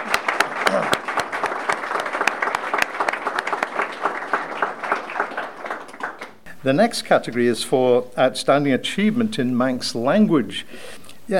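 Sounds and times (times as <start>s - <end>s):
audience applause: 0.0s - 6.5s
speech: 6.6s - 11.3s.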